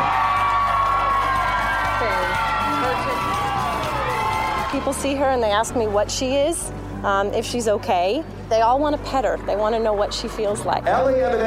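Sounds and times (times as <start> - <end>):
audience applause: 0.0 - 4.8
speech: 4.8 - 11.4.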